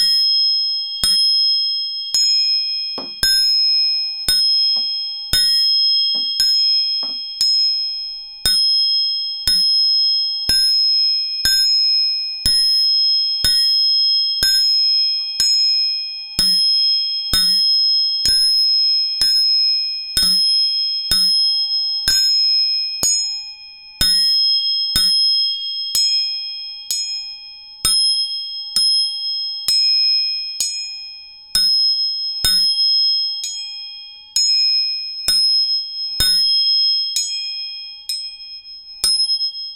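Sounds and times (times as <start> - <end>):
three tuning forks struck and ringing: 0.0 - 39.7.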